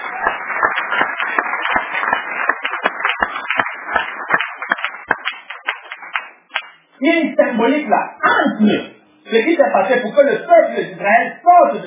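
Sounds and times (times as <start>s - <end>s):
audience applause during a French-language sermon: 0.0s - 6.8s
speech: 7.0s - 11.8s.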